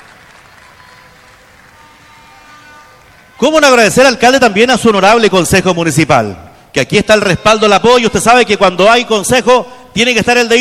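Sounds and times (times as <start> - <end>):
audience applause: 0.0 - 3.7
speech: 3.4 - 10.5.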